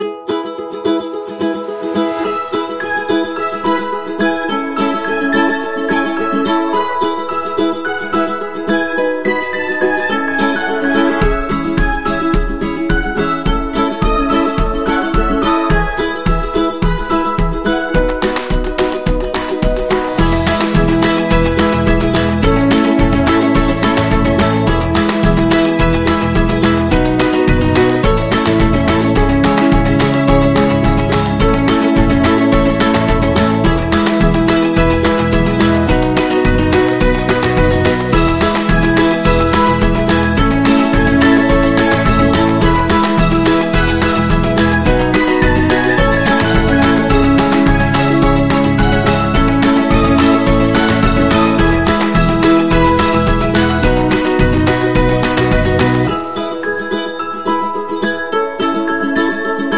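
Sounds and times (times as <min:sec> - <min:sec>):
upbeat ukulele: 0:00.0 - 0:59.7.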